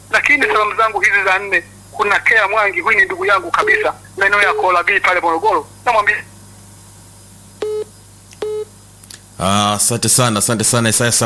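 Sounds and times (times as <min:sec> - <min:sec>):
faint steady low hum: 0:00.0 - 0:11.2
speech: 0:00.2 - 0:06.3, 0:09.4 - 0:11.2
phone line busy tone beeps: 0:07.6 - 0:08.7.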